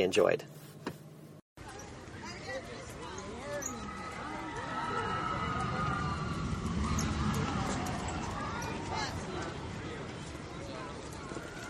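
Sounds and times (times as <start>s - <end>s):
people's voices: 1.6s - 11.6s
high wavering cries: 3.3s - 9.2s
Expedition Everest roller coaster at Disney's Animal Kingdom roaring: 3.7s - 11.6s.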